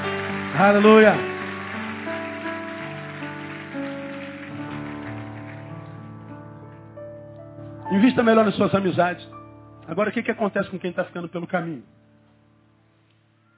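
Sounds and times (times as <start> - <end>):
audience applauding loudly: 0.0 - 6.1
speech: 0.6 - 1.3, 8.0 - 12.0.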